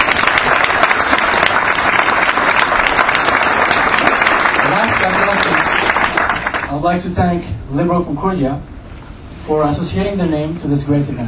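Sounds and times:
audience applause: 0.0s - 6.7s
speech: 6.8s - 8.7s, 9.5s - 11.2s.

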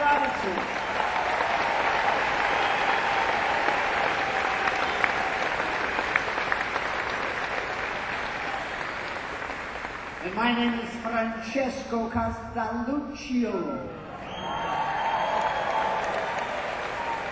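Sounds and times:
faint cheers: 0.0s - 9.4s, 14.1s - 17.2s
applause from a large audience: 0.0s - 10.7s, 14.2s - 17.2s
speech: 10.4s - 14.0s.

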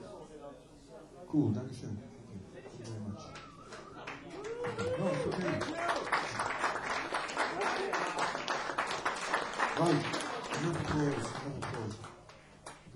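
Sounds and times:
speech: 1.3s - 2.1s
audience applause: 3.3s - 12.9s.

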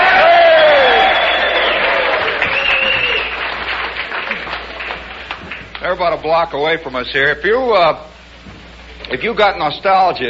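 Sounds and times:
whoops and shouts: 0.0s - 3.3s
crowd cheering and applauding a band: 0.0s - 5.8s
speech: 5.9s - 8.1s, 9.0s - 10.2s.

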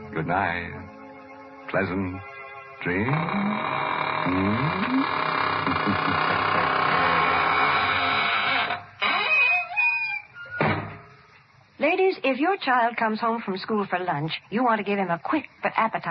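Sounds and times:
speech: 0.2s - 1.0s, 1.7s - 6.5s, 11.9s - 16.0s
squeaking door creaking shut: 3.0s - 11.3s.

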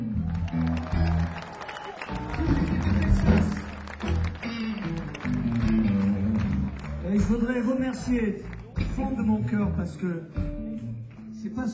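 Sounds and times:
audience applause: 0.1s - 8.9s
speech: 7.9s - 10.5s, 11.4s - 11.7s.

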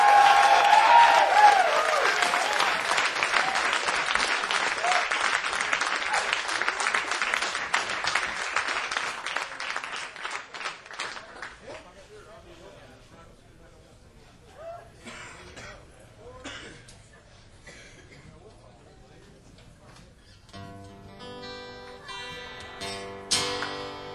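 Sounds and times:
concert audience applause welcoming a performer: 0.0s - 11.8s.

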